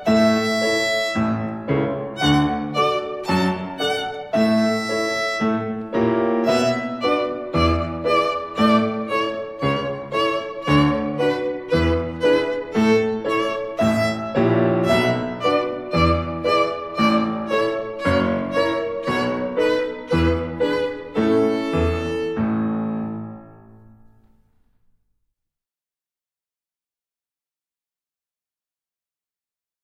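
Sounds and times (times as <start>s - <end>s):
violin playing in slow practice tempo: 0.0s - 23.4s.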